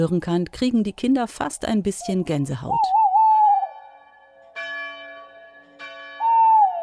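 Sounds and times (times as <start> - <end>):
speech: 0.0 - 3.0
tawny owl call: 2.8 - 3.9, 6.2 - 6.8.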